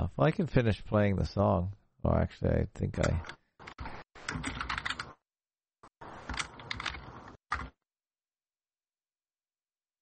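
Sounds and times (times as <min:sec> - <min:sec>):
speech: 0:00.2 - 0:03.4
clunky clattery typing on a computer keyboard: 0:04.3 - 0:05.1, 0:06.3 - 0:07.7.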